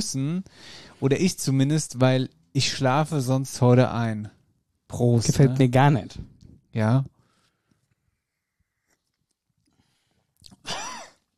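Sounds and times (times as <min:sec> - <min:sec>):
speech: 0:00.0 - 0:07.1
person coughing after choking on a drink: 0:10.6 - 0:11.2.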